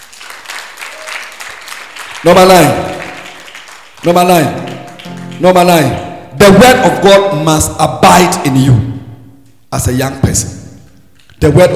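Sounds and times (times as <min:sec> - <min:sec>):
people cheering: 0:00.0 - 0:05.3
crowd clapping in a large room: 0:00.0 - 0:06.1
speech: 0:02.2 - 0:02.9, 0:04.0 - 0:04.7, 0:05.4 - 0:09.0, 0:09.7 - 0:10.6, 0:11.4 - 0:11.7.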